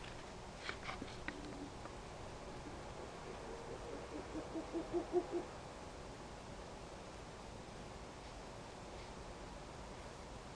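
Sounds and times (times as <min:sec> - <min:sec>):
background hiss: 0:00.0 - 0:10.5
owl hooting: 0:02.5 - 0:05.5.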